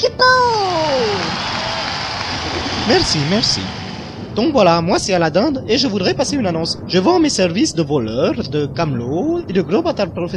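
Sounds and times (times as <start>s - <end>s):
speech: 0.2s - 0.6s, 2.9s - 3.8s, 4.4s - 10.3s
audience applause: 0.6s - 4.4s.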